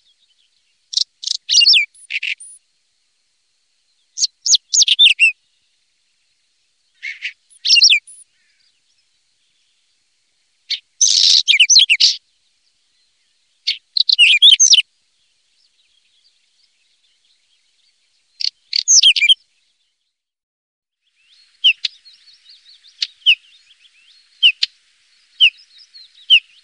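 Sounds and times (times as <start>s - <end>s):
common stonechat singing: 0.0s - 2.6s, 3.8s - 20.3s, 21.0s - 26.6s.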